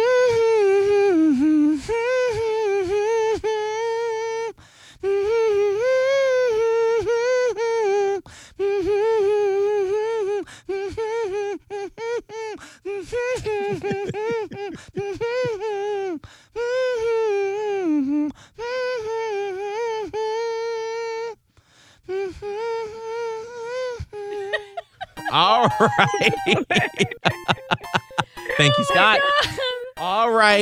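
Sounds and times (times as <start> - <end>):
person humming a tune: 0.0 - 21.4, 22.1 - 30.1
laughter: 13.3 - 15.7, 24.3 - 29.9
speech: 25.8 - 27.1, 28.6 - 29.6, 30.4 - 30.6.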